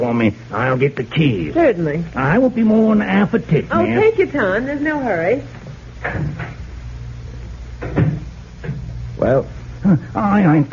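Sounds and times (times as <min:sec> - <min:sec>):
speech: 0:00.0 - 0:06.5, 0:09.2 - 0:10.7
heavy oak door closing: 0:06.0 - 0:06.6, 0:07.8 - 0:08.9.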